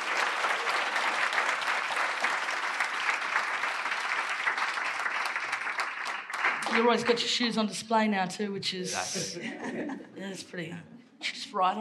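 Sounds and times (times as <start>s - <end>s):
round of applause: 0.0s - 7.3s
speech: 6.8s - 11.7s
laughter: 8.9s - 10.4s.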